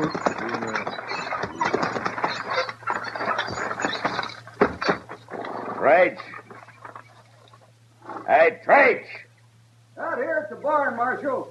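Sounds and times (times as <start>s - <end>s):
speech: 0.0s - 0.3s, 5.8s - 6.4s, 8.5s - 9.2s, 10.7s - 11.4s
horse harness gear rattling: 0.0s - 8.3s
team of horses' hooves clattering at a barn: 0.0s - 8.3s.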